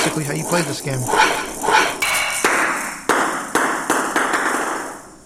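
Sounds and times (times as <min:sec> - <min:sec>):
speech: 0:00.2 - 0:01.8
table tennis video game ball hits: 0:02.5 - 0:05.0.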